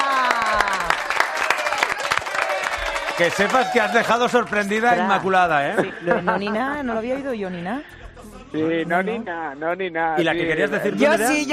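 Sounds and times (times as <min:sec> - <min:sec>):
people cheering and whooping: 0:00.0 - 0:04.7
audience applause: 0:00.0 - 0:05.6
speech: 0:03.2 - 0:11.5
laughter: 0:03.5 - 0:07.0.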